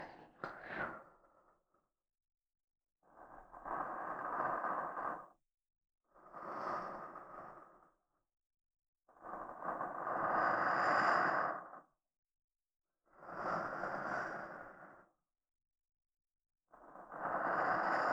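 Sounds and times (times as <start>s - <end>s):
sleep breathing in right channel: 0.0s - 1.0s
soft sleep-inducing voice in right channel: 0.0s - 1.4s, 3.1s - 5.3s, 6.2s - 7.9s, 9.2s - 11.9s, 13.2s - 15.2s, 16.8s - 18.1s.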